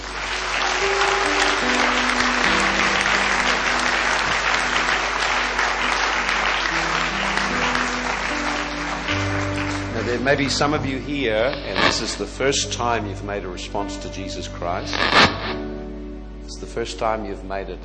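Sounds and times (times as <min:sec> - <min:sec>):
audience applause: 0:00.0 - 0:12.4
speech: 0:10.2 - 0:15.3, 0:16.8 - 0:17.8.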